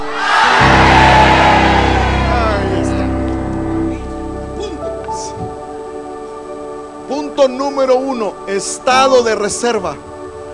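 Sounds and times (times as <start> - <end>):
crowd shouting and cheering for joy: 0.0 - 4.5
speech: 7.5 - 10.1.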